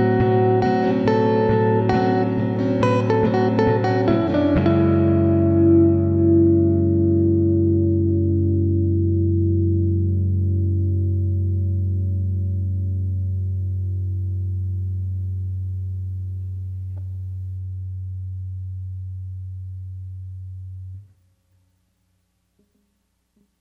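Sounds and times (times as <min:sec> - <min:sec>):
17-tone equal temperament duet: 0:00.0 - 0:17.8.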